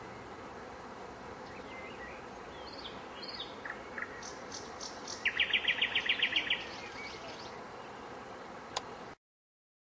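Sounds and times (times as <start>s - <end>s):
thrush nightingale: 1.4s - 8.0s.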